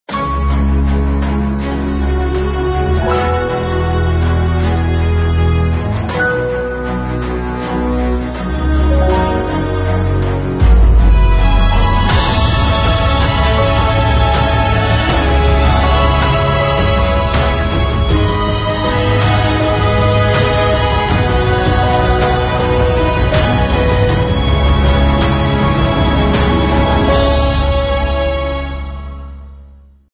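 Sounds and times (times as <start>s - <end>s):
epic music: 0.1s - 30.1s.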